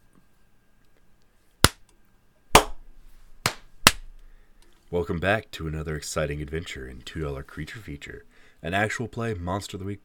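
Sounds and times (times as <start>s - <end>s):
sync hand clap: 1.6s - 1.8s, 2.6s - 2.8s, 3.4s - 4.1s
speech: 4.9s - 10.0s.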